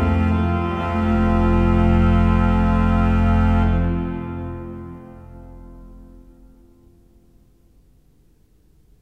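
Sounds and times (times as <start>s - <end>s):
pipe organ with Holfluit Prestant Basson Hobo Subbas stops coupled: 0.0s - 7.1s.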